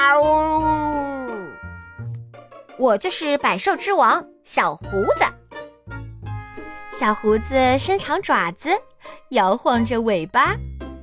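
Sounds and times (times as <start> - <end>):
cat meowing: 0.0 - 1.8
speech: 2.8 - 5.4, 7.0 - 10.7.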